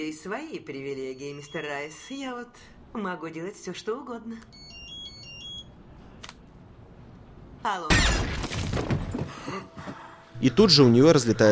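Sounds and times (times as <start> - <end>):
speech: 0.0 - 4.7, 7.6 - 8.3, 10.4 - 11.5
judge's mobile phone ringing: 1.1 - 2.3, 4.5 - 5.8.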